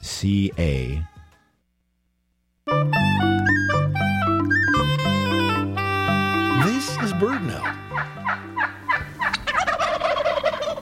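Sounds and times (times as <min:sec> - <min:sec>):
speech: 0:00.2 - 0:01.1
male wild turkey gobbling: 0:03.4 - 0:10.8.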